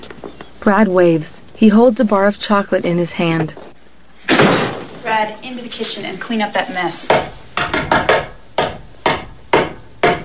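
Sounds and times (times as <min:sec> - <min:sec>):
speech: 0:00.6 - 0:03.6, 0:05.1 - 0:07.3
knocking on the back door: 0:07.1 - 0:10.2.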